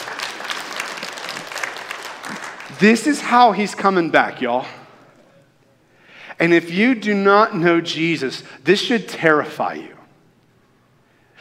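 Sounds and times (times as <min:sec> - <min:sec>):
congregation clapping during a church sermon: 0:00.0 - 0:03.8
speech: 0:02.8 - 0:04.8, 0:06.4 - 0:10.0.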